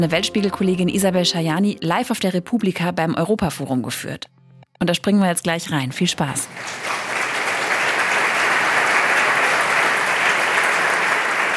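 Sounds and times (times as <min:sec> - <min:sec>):
speech: 0:00.0 - 0:07.1
live audience applauding: 0:06.4 - 0:11.5.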